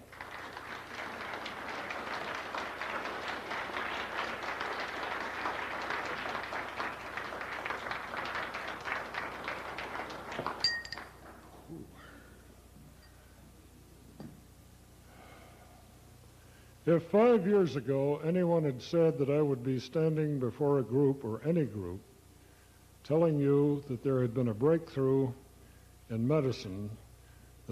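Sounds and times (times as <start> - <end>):
audience applause welcoming a lecturer at the Granada Forum: 0.0 - 11.6
light clinks: 10.6 - 11.1
speech: 16.9 - 22.1, 23.1 - 25.4, 26.1 - 27.0.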